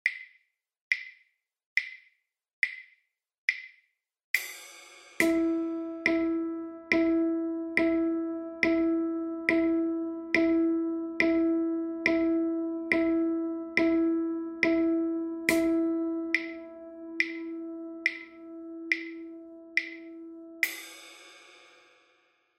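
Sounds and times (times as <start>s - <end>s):
steady beat: 4.4s - 21.5s.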